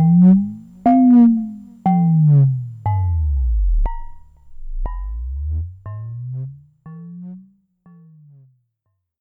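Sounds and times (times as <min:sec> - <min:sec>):
Sonic Six ring modulated synthesizer: 0:00.0 - 0:06.6.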